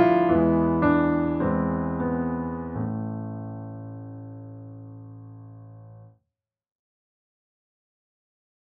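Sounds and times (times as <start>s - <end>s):
solo piano piece: 0.0s - 6.1s.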